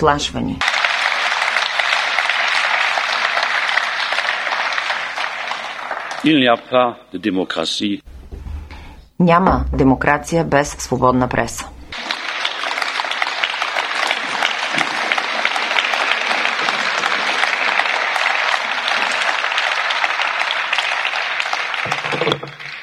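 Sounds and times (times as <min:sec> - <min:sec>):
speech: 0:00.0 - 0:00.8, 0:06.2 - 0:08.1, 0:09.2 - 0:11.8
audience applause: 0:00.6 - 0:06.8, 0:12.0 - 0:22.8.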